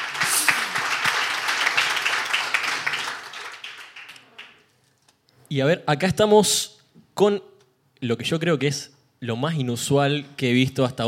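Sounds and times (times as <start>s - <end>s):
audience applause: 0.0s - 4.6s
speech: 5.5s - 11.0s.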